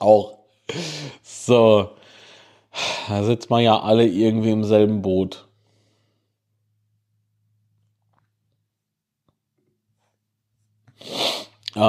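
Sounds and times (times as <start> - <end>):
speech: 0.0 - 2.0, 2.8 - 5.5
person sniffling from allergy: 0.7 - 1.3, 10.9 - 11.6.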